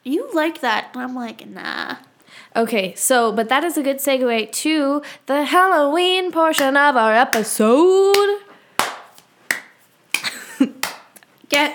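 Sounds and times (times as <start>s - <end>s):
speech: 0.0s - 8.4s, 11.5s - 11.7s
hand clapping: 8.1s - 11.7s.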